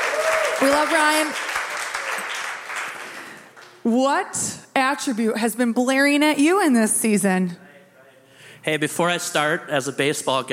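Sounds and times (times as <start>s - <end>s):
audience cheering: 0.0s - 3.1s
audience applause: 0.0s - 3.8s
speech: 0.6s - 1.5s, 3.8s - 7.6s, 8.6s - 10.5s.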